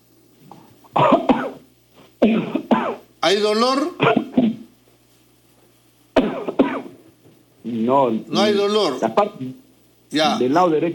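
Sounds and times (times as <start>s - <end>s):
loud forceful coughs: 0.9s - 3.1s, 4.0s - 4.7s, 6.2s - 7.0s
speech: 3.2s - 4.2s, 7.7s - 10.9s.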